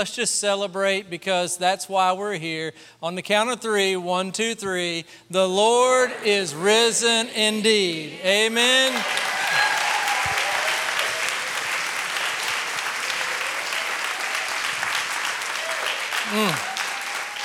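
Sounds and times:
speech: 0.0 - 9.7
voices and whoops: 8.8 - 11.5, 15.6 - 17.4
audience clapping: 8.8 - 17.4.

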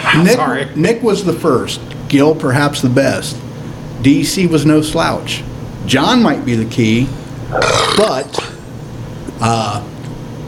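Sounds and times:
speech: 0.2 - 8.5, 9.4 - 9.9
person burping: 7.5 - 8.6.

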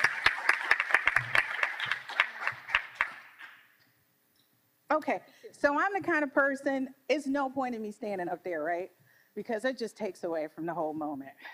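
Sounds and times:
audience applause: 0.0 - 3.6
speech: 5.0 - 11.5.

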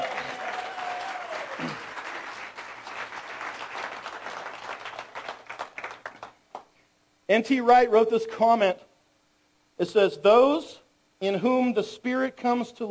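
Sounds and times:
round of applause: 0.0 - 6.7
speech: 7.3 - 8.9, 9.8 - 12.8.

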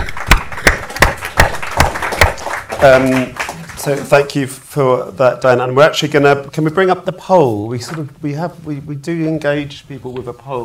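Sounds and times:
audience applause: 0.0 - 4.2
speech: 2.8 - 10.6.

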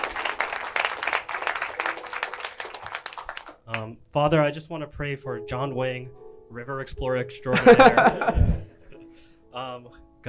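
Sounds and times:
audience applauding after a baptism: 0.0 - 3.8
speech: 3.8 - 8.6, 9.8 - 10.2
laughter: 7.6 - 8.6.

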